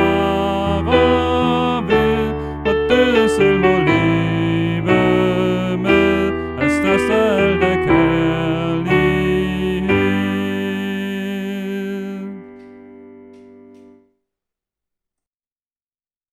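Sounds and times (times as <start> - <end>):
soprano voice: 0.0 - 12.9.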